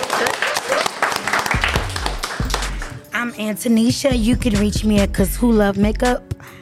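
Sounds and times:
group of people clapping: 0.0 - 3.0
speech: 3.4 - 6.6.

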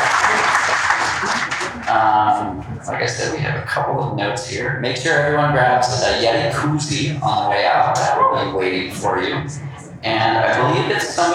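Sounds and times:
round of applause: 0.0 - 2.1
laughter: 0.0 - 4.3, 5.3 - 11.3
speech: 3.0 - 11.3.

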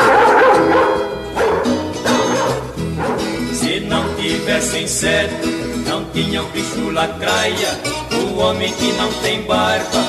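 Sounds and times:
dog barking: 0.0 - 3.4
speech: 4.5 - 5.6, 6.2 - 10.0.

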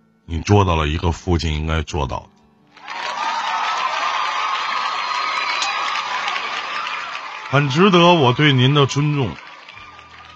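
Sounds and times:
speech: 0.3 - 2.3, 7.5 - 9.4
applause: 2.7 - 10.3.

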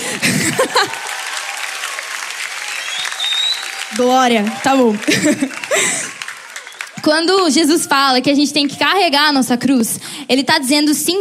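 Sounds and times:
laughter: 0.0 - 1.3, 4.7 - 6.7
audience applause: 0.0 - 7.9
speech: 3.9 - 6.2, 7.0 - 11.1.

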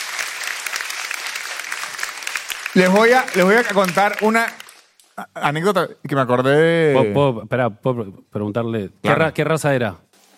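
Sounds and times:
group clapping: 0.0 - 5.2
speech: 2.8 - 4.6, 5.2 - 10.0.

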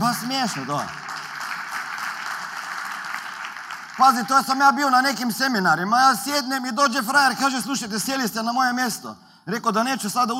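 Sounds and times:
audience applause in a hall during a humorous talk: 0.0 - 4.6
speech: 0.2 - 1.0, 4.0 - 10.3.

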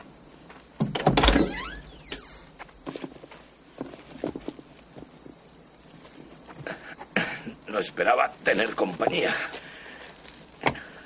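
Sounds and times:
car door opening: 0.8 - 2.5
speech: 7.8 - 9.6.

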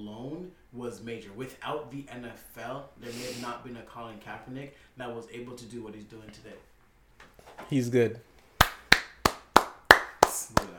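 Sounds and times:
speech: 0.0 - 6.7, 7.5 - 8.3
hand clapping: 8.6 - 10.7.

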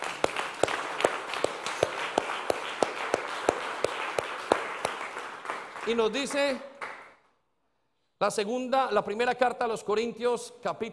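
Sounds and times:
applause: 0.0 - 7.3
speech: 5.9 - 6.7, 8.2 - 10.9.

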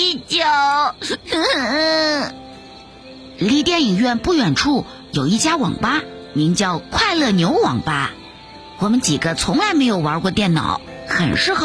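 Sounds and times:
voice imitating a small child crying: 1.1 - 2.4
speech: 3.4 - 8.2, 8.8 - 11.6.

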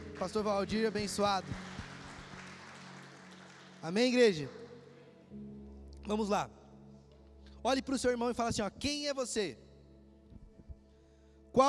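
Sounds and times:
audience applause: 0.0 - 4.6
speech: 0.2 - 1.8, 3.8 - 4.6, 6.1 - 6.6, 7.6 - 9.6.

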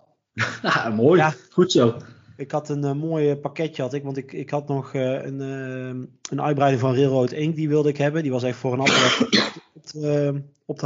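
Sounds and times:
laughter: 0.4 - 2.1
speech: 0.4 - 10.8
sneeze: 8.8 - 9.6.

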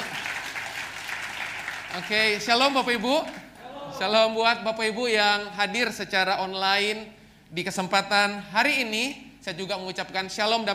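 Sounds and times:
audience applause: 0.0 - 2.5
speech: 2.0 - 3.4, 4.0 - 10.7.

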